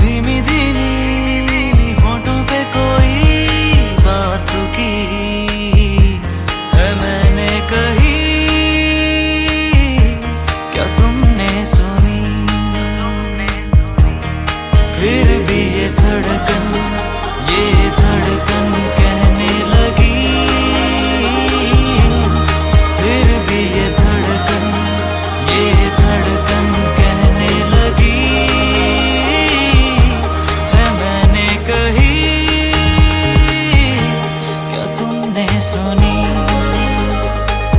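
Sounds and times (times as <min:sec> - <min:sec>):
romantic Hindi song ringtone: 0:00.0 - 0:37.7.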